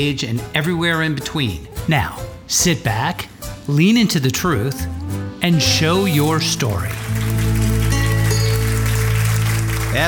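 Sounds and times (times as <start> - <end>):
speech: 0.0 - 7.2
canned applause sound effect: 6.2 - 10.0.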